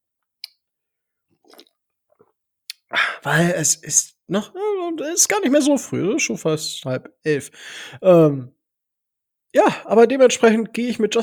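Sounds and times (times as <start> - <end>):
person sipping coffee: 1.4 - 1.8
speech: 3.2 - 8.6, 9.5 - 11.2.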